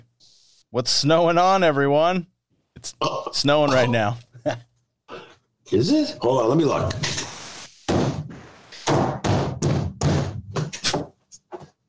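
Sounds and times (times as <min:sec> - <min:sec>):
speech: 0:00.7 - 0:04.7, 0:05.7 - 0:07.2
stomping footsteps: 0:07.9 - 0:11.8.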